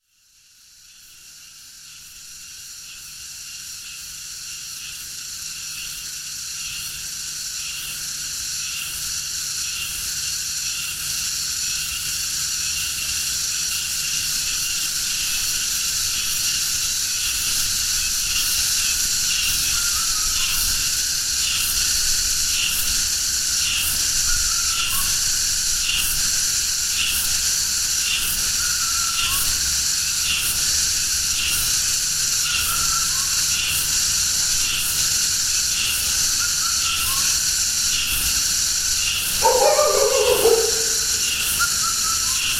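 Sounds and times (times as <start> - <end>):
cicadas: 0.0 - 42.5
bird: 39.4 - 41.4
dog: 39.4 - 41.4.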